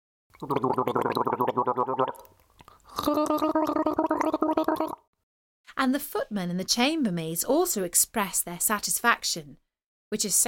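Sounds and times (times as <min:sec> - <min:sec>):
person gargling water in their mouth: 0:00.3 - 0:05.1
speech: 0:00.4 - 0:02.0, 0:05.9 - 0:10.4.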